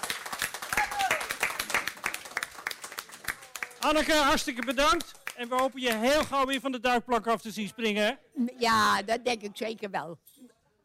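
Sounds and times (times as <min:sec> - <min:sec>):
audience applause: 0:00.0 - 0:06.0
speech: 0:03.8 - 0:10.6.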